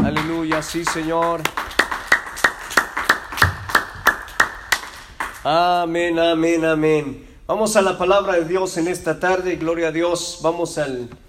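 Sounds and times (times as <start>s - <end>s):
audience clapping: 0.0s - 5.6s
speech: 0.5s - 1.6s, 5.4s - 11.2s.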